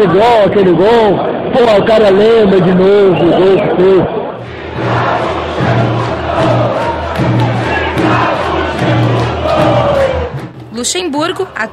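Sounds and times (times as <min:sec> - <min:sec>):
speech: 0:00.0 - 0:04.2, 0:10.8 - 0:11.7
stadium crowd ovation: 0:00.0 - 0:10.5.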